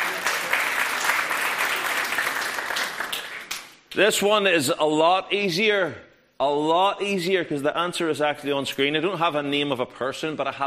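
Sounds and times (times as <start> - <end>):
audience applause: 0.0 - 3.6
speech: 3.9 - 10.6.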